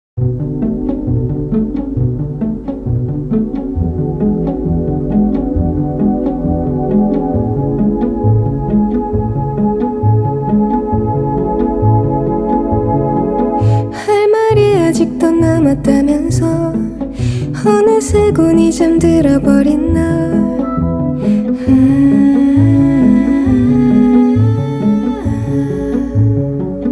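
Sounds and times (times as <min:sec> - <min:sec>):
waltz music: 0:00.2 - 0:26.9.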